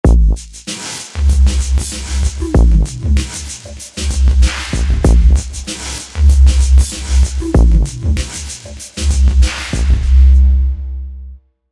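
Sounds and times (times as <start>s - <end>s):
music beat: 0.0s - 10.9s.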